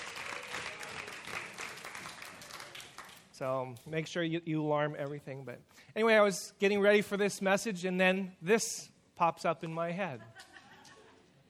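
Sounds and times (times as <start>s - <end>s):
audience applause: 0.0s - 3.2s
speech: 3.4s - 10.4s
laughter: 10.1s - 11.4s.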